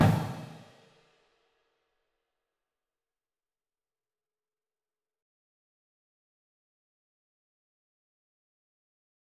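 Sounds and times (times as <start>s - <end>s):
full drumline: 0.0s - 0.6s
music: 0.0s - 2.6s.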